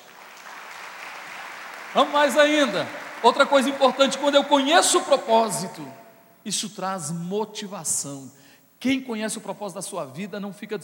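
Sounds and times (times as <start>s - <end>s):
audience applause: 0.0s - 4.9s
speech: 1.9s - 10.8s.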